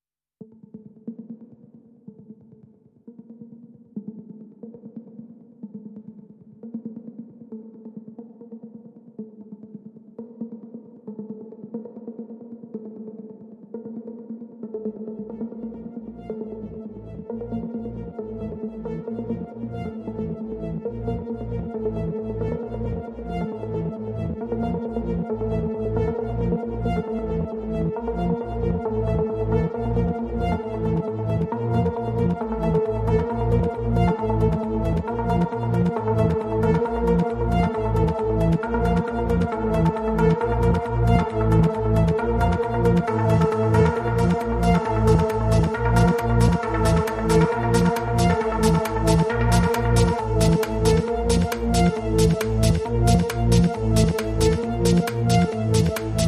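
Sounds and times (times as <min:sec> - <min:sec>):
ambient music: 0:15.6 - 0:56.2.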